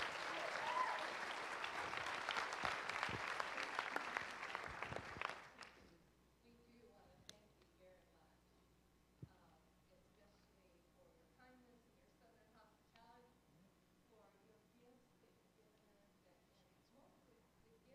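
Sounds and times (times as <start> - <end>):
church congregation at Whitley Church applauding: 0.0 - 5.8.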